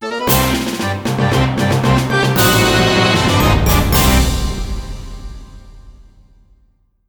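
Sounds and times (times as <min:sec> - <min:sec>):
game over jingle: 0:00.0 - 0:04.9.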